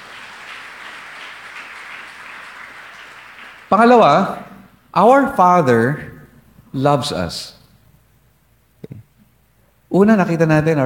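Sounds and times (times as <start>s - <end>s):
church congregation applause during a sermon: 0.0s - 4.8s
speech: 3.7s - 6.1s, 6.7s - 7.6s, 10.0s - 10.8s.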